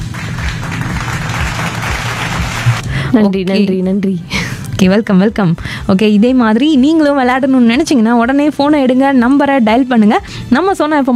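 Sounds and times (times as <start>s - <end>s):
small group applause for a contestant after a word game: 0.0s - 2.8s
speech: 3.1s - 11.1s.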